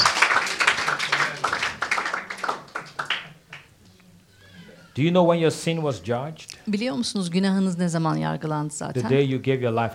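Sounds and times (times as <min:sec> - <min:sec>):
people clapping hands: 0:00.0 - 0:03.7
speech: 0:05.0 - 0:09.9.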